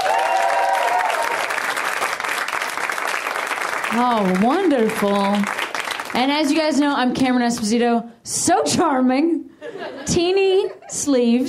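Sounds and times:
audience applause: 0:00.0 - 0:06.2
speech: 0:03.9 - 0:09.4, 0:10.2 - 0:11.4.

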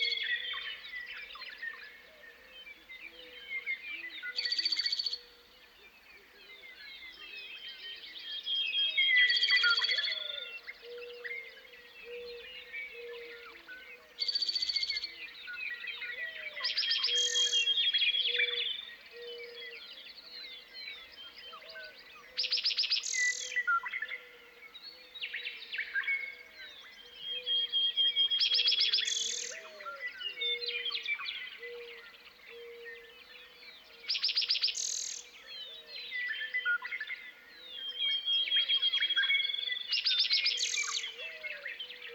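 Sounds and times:
loud meadowlark song phrases: 0:00.0 - 0:42.1.

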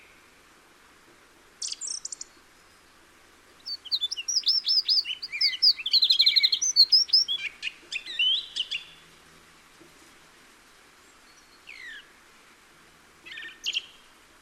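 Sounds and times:
song thrush singing: 0:01.6 - 0:03.0, 0:03.6 - 0:09.1, 0:11.0 - 0:12.6, 0:13.2 - 0:14.2.

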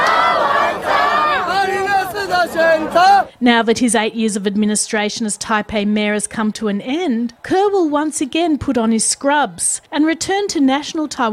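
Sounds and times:
supporters outside Taipei City Hall shouting and chanting: 0:00.0 - 0:03.4
speech: 0:02.9 - 0:11.3.

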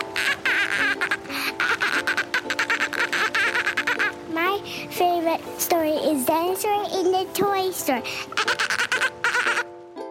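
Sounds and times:
child imitating a dolphin: 0:00.0 - 0:04.4, 0:08.2 - 0:09.7
speech: 0:05.4 - 0:08.4.

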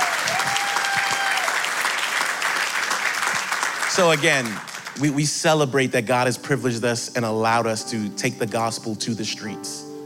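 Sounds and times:
audience applause: 0:00.0 - 0:05.1
speech: 0:04.0 - 0:09.9.

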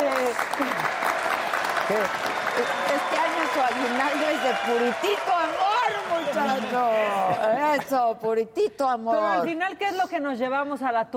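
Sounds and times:
applause: 0:00.0 - 0:07.3
speech: 0:01.9 - 0:05.7, 0:06.3 - 0:11.1.

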